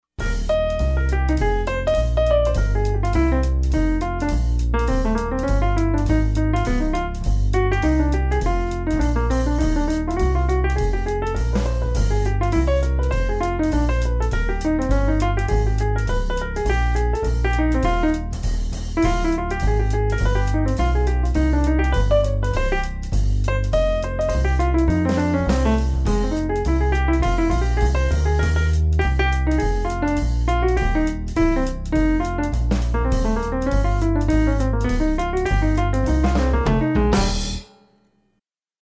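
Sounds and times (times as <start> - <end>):
etude in E-flat major: 0.2 - 38.1.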